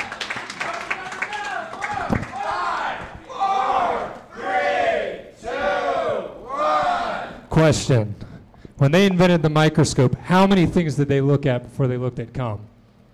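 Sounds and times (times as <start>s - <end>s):
audience clapping for a comedy contestant: 0.0s - 4.3s
crowd whooping and shouting: 0.0s - 7.4s
speech: 7.6s - 8.2s, 8.8s - 12.7s.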